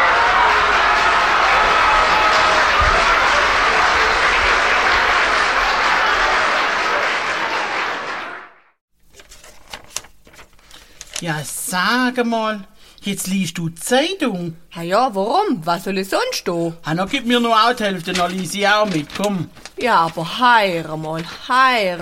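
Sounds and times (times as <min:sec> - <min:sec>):
applause from a button: 0:00.0 - 0:08.8
speech: 0:11.4 - 0:22.0.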